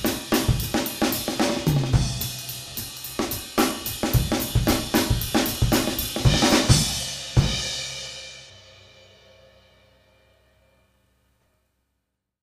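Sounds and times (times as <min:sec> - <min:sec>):
swing and big-band-style drum playing at 220 BPM: 0:00.0 - 0:08.0.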